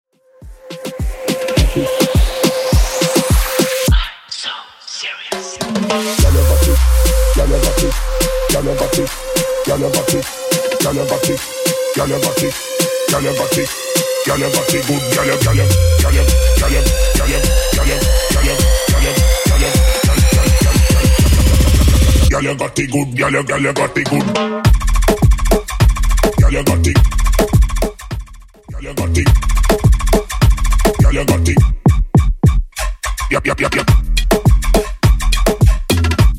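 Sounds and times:
moombahton remix: 0.4s - 36.3s.

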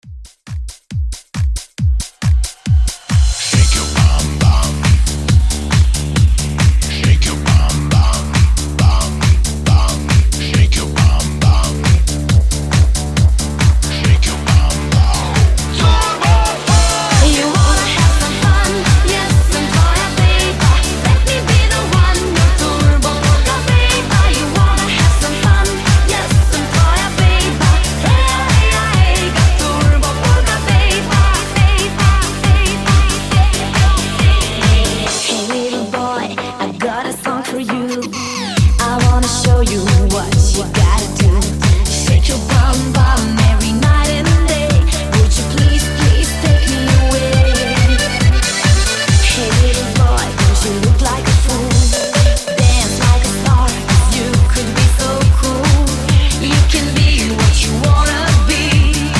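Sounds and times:
fast polka music: 0.2s - 59.1s.

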